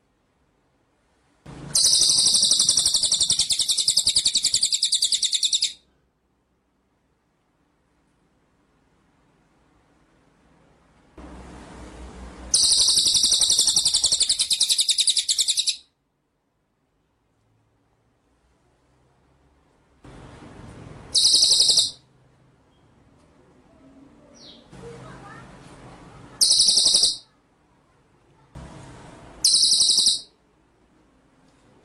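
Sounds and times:
white-rumped shama trilling: 1.7 - 5.8, 12.5 - 15.8, 21.1 - 22.0, 26.4 - 27.3, 29.4 - 30.4.

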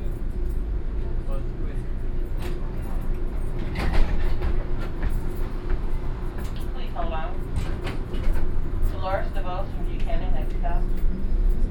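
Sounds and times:
streetcar in the Castro district of San Francisco rattling along rails: 0.0 - 11.6.

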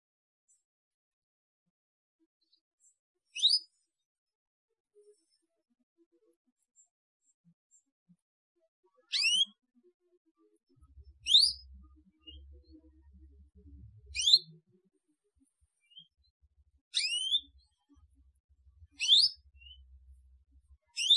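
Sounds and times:
Atlantic canary song: 2.4 - 3.8, 8.9 - 21.1.

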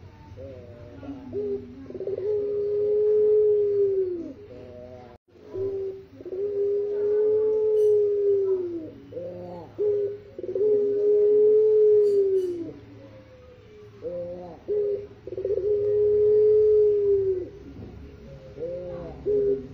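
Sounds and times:
white Barbary dove cooing: 0.0 - 19.7.

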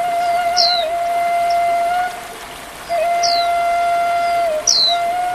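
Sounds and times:
Oriental magpie-robin song of high down-slurred chirps: 0.1 - 1.7, 2.8 - 5.2.

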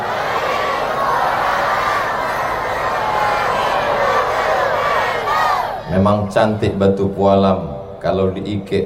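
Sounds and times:
crowd answering a salam greeting: 0.0 - 5.9
speech: 6.0 - 8.8.

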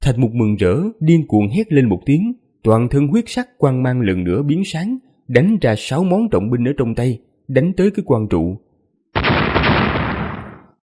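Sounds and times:
speech: 0.1 - 9.4
loud explosion: 9.2 - 10.8.

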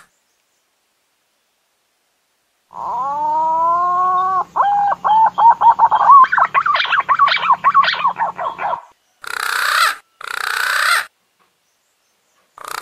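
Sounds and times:
green pigeon whistled call sequence: 2.8 - 11.0.

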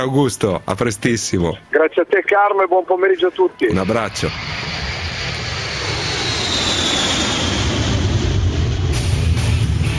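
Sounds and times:
speech: 0.0 - 4.7
jet aircraft engine roaring with turbine whine: 3.6 - 9.9.

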